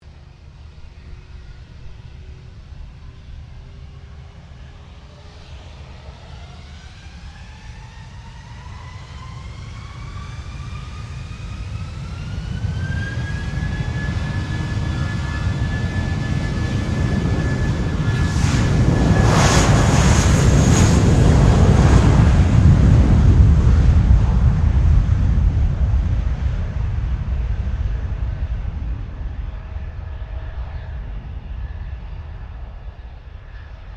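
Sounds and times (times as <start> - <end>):
Airbus A320 airliner taking off at an airshow: 0.1 - 33.9.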